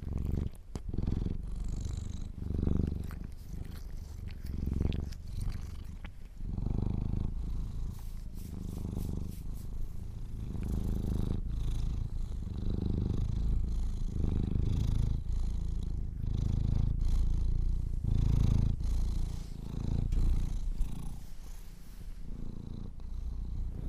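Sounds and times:
domestic cat purring: 0.0 - 23.8.

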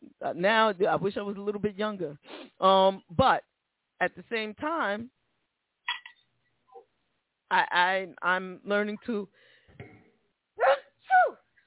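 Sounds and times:
speech: 0.2 - 5.2, 7.5 - 9.9
person sneezing: 10.6 - 11.4.

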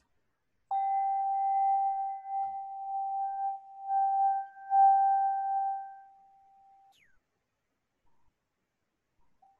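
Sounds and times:
singing bowl ringing: 0.7 - 6.7.

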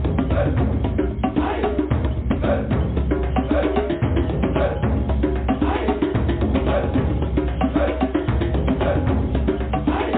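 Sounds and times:
drumming with a heavy booming low end: 0.0 - 10.1.

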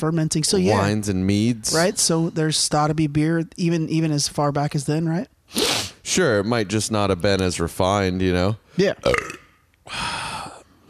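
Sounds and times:
speech: 0.0 - 10.2
person burping: 9.0 - 9.6.

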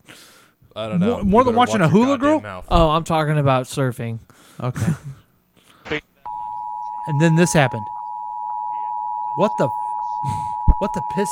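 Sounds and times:
speech: 0.8 - 5.2, 5.9 - 6.1, 7.1 - 7.9, 9.4 - 11.3
electronic TV beep tone: 6.3 - 11.3.

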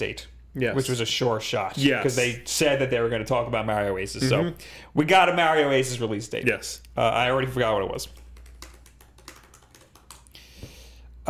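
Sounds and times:
speech: 0.0 - 8.2
typing on a computer keyboard: 8.0 - 10.3.

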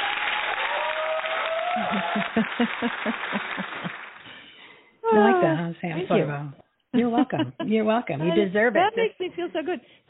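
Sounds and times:
audience round of applause: 0.0 - 4.6
laughter: 1.6 - 4.2, 7.0 - 7.9, 8.8 - 9.8
speech: 1.8 - 4.1, 5.1 - 10.0.

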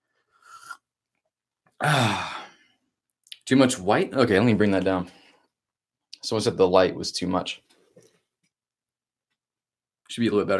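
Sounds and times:
swig of coffee being drunk: 0.3 - 0.9
speech: 1.8 - 2.3, 3.5 - 5.2, 6.2 - 7.7, 10.1 - 10.5.

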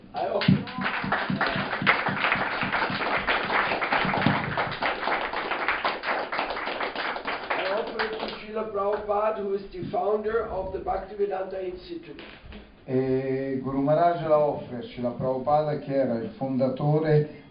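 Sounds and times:
applause: 0.2 - 8.5
speech: 9.1 - 17.4.

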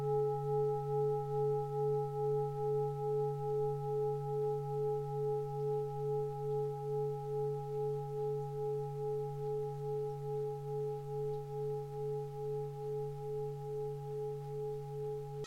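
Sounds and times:
Tibetan bowls humming: 0.0 - 15.4.

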